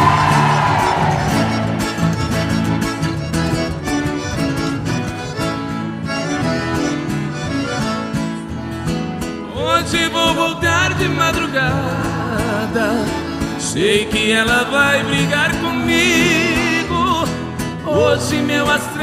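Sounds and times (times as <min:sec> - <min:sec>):
men and women in a forró show crowd shouting and cheering: 0:00.0 - 0:02.8
live forró music with an accordion player: 0:00.0 - 0:19.0
speech: 0:13.8 - 0:16.2, 0:17.9 - 0:19.0.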